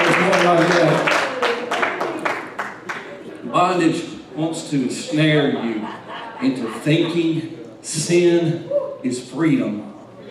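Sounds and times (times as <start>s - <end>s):
audience clapping hands in a steady rhythmic beat: 0.0s - 3.2s
speech: 0.5s - 0.8s, 3.6s - 9.9s
laughter: 5.0s - 7.6s.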